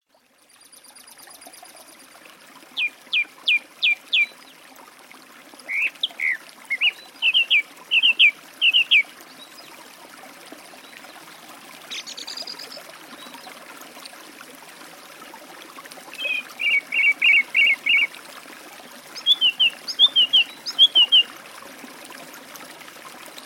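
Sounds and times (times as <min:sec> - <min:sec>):
song thrush singing by a forest stream: 0:05.7 - 0:09.1, 0:16.2 - 0:18.1, 0:19.2 - 0:21.3.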